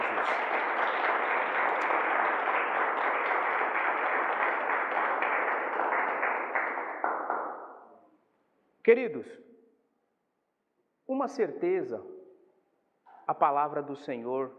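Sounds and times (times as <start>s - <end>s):
audience applause: 0.0s - 7.7s
speech: 8.8s - 9.5s, 11.2s - 12.1s, 13.3s - 14.5s.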